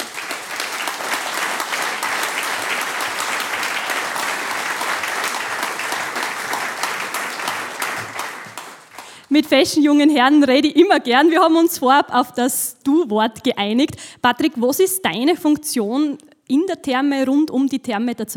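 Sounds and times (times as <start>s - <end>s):
audience applause: 0.0s - 9.3s
speech: 9.4s - 18.3s.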